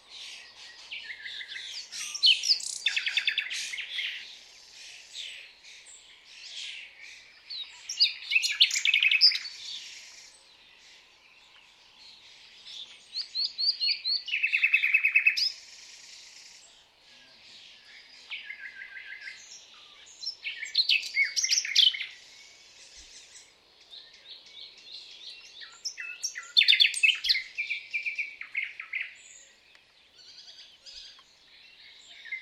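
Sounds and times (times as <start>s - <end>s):
common nightingale singing: 0.0s - 32.3s.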